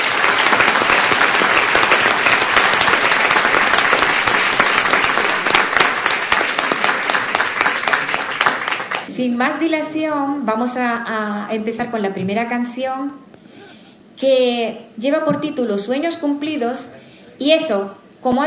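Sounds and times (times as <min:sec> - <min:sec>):
audience applause: 0:00.0 - 0:09.1
speech: 0:09.2 - 0:13.3, 0:14.2 - 0:18.4.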